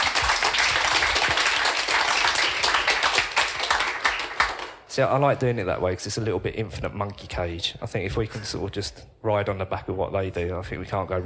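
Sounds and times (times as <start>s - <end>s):
audience applause for the panel: 0.0s - 4.8s
speech: 5.0s - 11.2s.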